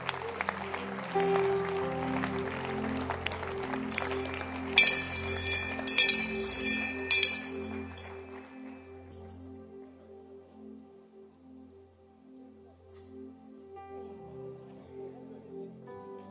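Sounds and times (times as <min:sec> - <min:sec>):
congregation clapping in church: 0:00.0 - 0:06.1
sustained low musical tones: 0:01.2 - 0:08.8
bright metallic jingling: 0:03.9 - 0:08.4.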